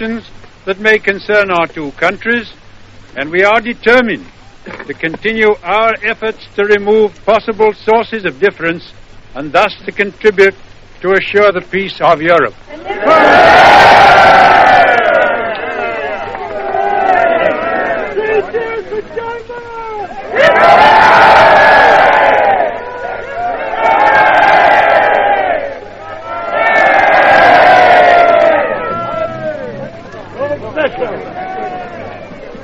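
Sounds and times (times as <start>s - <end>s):
speech: 0.0s - 14.6s
crowd cheering and shouting well done: 12.7s - 32.6s.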